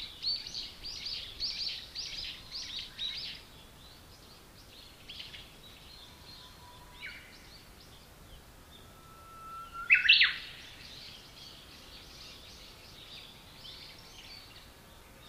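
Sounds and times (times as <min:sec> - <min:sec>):
bush warbler song: 0:00.0 - 0:15.2.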